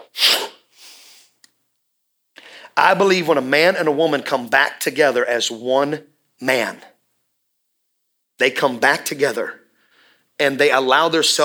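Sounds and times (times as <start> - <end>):
voice imitating God breathing into Adam's face: 0.2 - 1.3
speech: 2.8 - 6.9, 8.4 - 9.6, 10.4 - 11.4.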